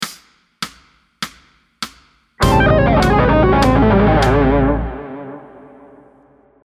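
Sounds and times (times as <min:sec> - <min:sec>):
musical lick: 0:02.4 - 0:06.4.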